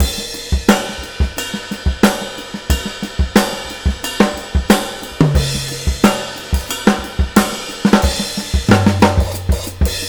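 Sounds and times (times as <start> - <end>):
jazzy 90 BPM bell groove drum loop: 0.0 - 10.0.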